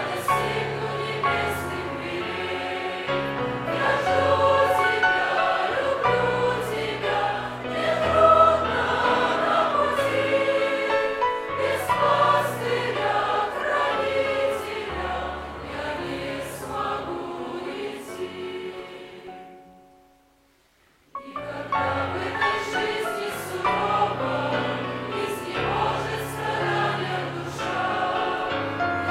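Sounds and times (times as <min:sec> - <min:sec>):
group singing: 0:00.0 - 0:19.4, 0:21.2 - 0:29.0.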